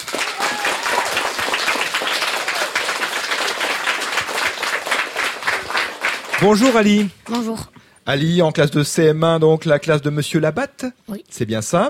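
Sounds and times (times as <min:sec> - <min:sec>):
audience applause: 0:00.0 - 0:07.1
speech: 0:06.4 - 0:11.8.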